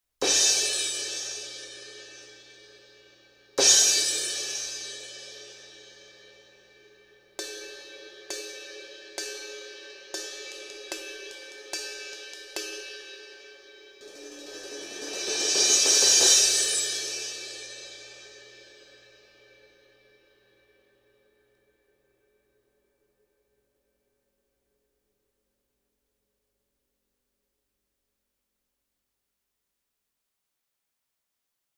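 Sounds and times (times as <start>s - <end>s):
crash cymbal: 0.2s - 20.4s.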